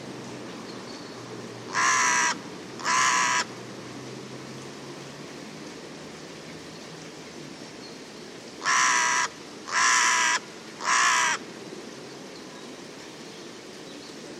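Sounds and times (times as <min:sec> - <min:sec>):
bird cawing: 0:01.7 - 0:03.5, 0:08.6 - 0:11.4.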